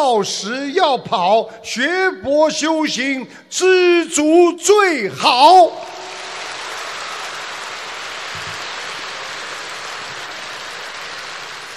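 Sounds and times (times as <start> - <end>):
speech: 0.0 - 6.1
audience applause from a large crowd: 5.8 - 11.7.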